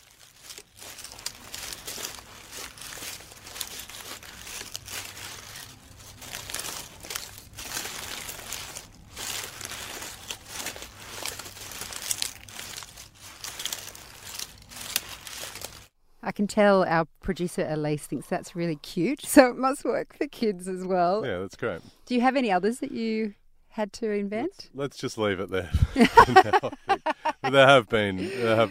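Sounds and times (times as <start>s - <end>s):
foley wombat movement made with leaves and a canvas bag: 0.0s - 15.9s
speech: 16.4s - 28.6s
laughter: 25.6s - 28.6s.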